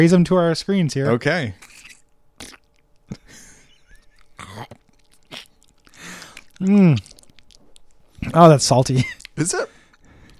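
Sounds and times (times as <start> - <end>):
speech: 0.0 - 1.7, 6.6 - 7.1, 8.2 - 9.8
crunchy chewing and biting on Steak-umm sliced steak: 1.6 - 8.5, 9.1 - 10.3.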